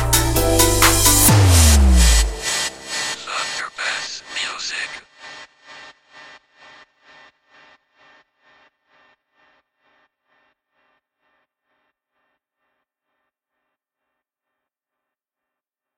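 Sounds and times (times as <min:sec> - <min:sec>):
house music mix: 0:00.0 - 0:05.0.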